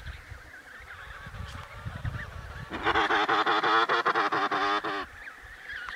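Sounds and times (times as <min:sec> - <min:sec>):
emperor penguin calls in Antarctica: 0:01.0 - 0:05.2.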